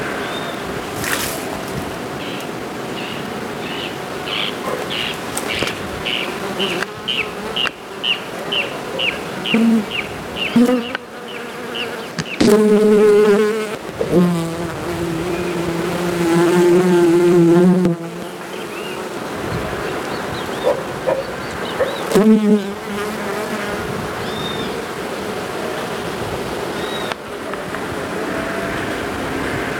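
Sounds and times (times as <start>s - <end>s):
bee buzzing: 0.0s - 28.9s
bird chirps: 2.2s - 12.5s, 20.1s - 22.2s, 26.8s - 27.2s.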